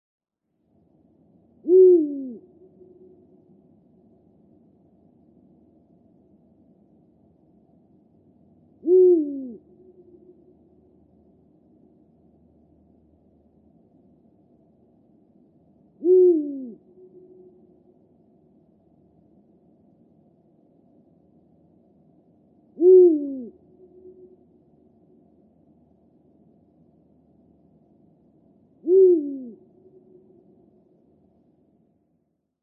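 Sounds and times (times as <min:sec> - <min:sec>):
low background hiss: 0:00.4 - 0:32.6
Eurasian eagle-owl deep hoot: 0:01.6 - 0:03.3, 0:08.8 - 0:10.5, 0:16.0 - 0:17.8, 0:22.8 - 0:24.4, 0:28.8 - 0:30.6.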